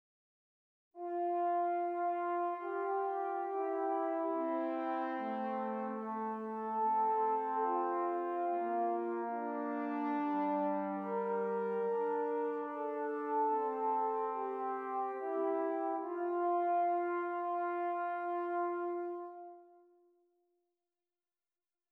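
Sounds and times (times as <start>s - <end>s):
two-voice counterpoint exercises: 1.0s - 19.9s.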